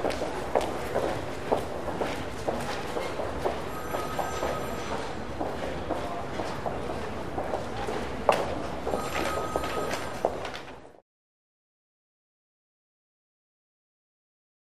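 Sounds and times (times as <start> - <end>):
shopping mall ambience: 0.0 - 11.0.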